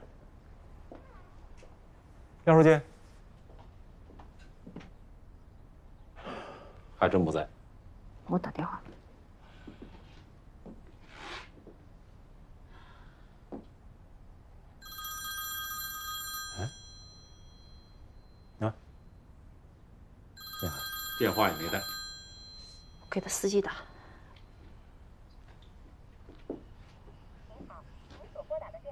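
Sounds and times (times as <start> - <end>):
speech: 2.4 - 2.9, 7.0 - 7.6, 8.3 - 9.0, 21.2 - 21.9, 23.1 - 23.9
telephone ringing: 14.8 - 18.6, 20.4 - 24.3.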